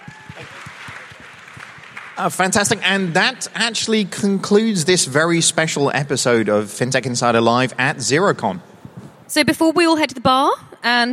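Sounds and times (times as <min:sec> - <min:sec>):
audience cheering: 0:00.0 - 0:03.4
speech: 0:02.2 - 0:08.7, 0:09.3 - 0:11.1.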